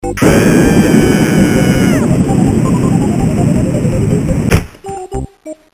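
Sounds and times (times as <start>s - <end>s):
bazooka firing: 0.2s - 3.4s, 4.5s - 5.1s.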